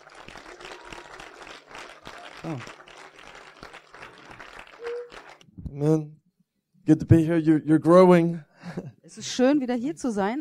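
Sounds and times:
audience applause: 0.0s - 5.4s
speech: 2.4s - 2.8s, 5.7s - 6.2s, 6.9s - 10.4s.

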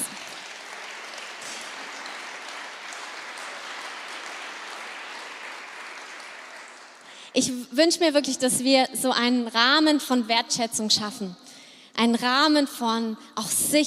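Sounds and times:
audience applause: 0.0s - 7.3s
speech: 7.4s - 11.4s, 12.0s - 13.8s.

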